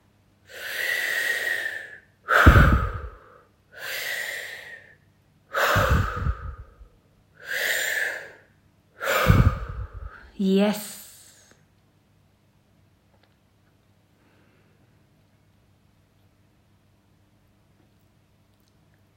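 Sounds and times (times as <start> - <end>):
deep forceful breathing in and out during a guided breathing exercise: 0.5 - 10.4
speech: 10.4 - 10.9.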